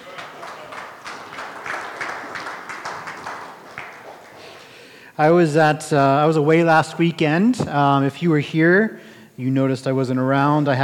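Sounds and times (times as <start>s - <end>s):
audience clapping: 0.0s - 5.0s
speech: 5.2s - 10.8s.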